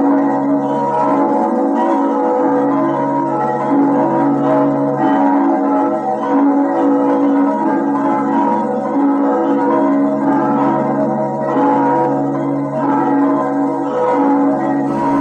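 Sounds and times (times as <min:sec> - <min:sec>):
bells of Lauban ringing: 0:00.0 - 0:15.1.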